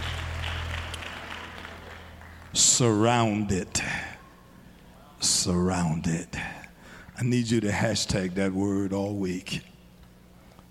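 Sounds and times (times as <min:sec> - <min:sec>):
audience clapping hands: 0:00.0 - 0:03.2
speech: 0:02.5 - 0:04.0, 0:05.4 - 0:06.4, 0:07.2 - 0:09.7.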